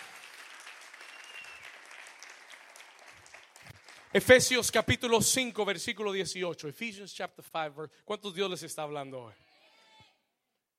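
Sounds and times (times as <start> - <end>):
crowd clapping: 0.0 - 5.0
isolated cheers and whoops: 1.0 - 2.5
speech: 4.1 - 9.5.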